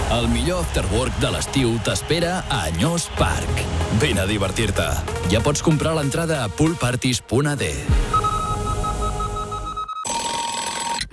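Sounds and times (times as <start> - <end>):
speech: 0.1 - 8.2
alarm clock ringing: 8.1 - 11.1.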